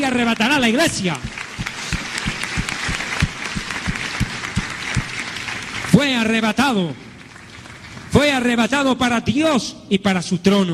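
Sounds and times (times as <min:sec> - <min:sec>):
speech: 0:00.1 - 0:01.4, 0:06.0 - 0:07.0, 0:08.2 - 0:10.7
crowd applause: 0:00.3 - 0:08.2
regular thumping beat: 0:00.6 - 0:05.2.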